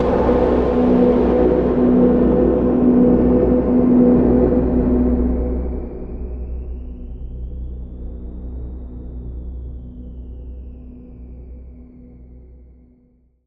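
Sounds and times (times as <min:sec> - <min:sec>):
cinematic adventure music: 0:00.0 - 0:05.6.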